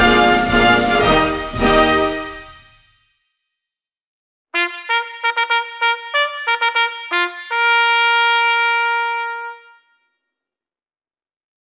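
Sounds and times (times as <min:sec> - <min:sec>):
national anthem played at flag raising: 0:00.0 - 0:02.7, 0:04.6 - 0:09.8.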